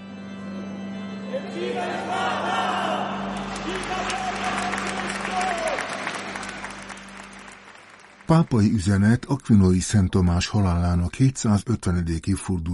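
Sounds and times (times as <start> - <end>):
speech: 1.3 - 2.4, 8.3 - 12.7
parishioners cheering and shouting: 1.8 - 6.5
parishioners applauding: 3.2 - 9.4.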